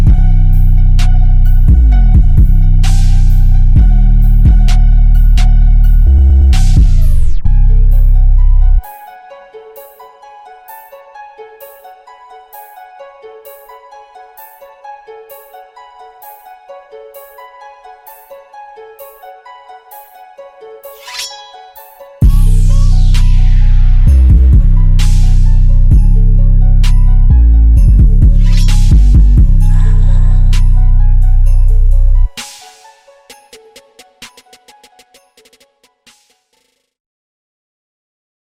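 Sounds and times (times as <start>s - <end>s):
bass test tone: 0.0s - 8.8s, 22.2s - 32.3s.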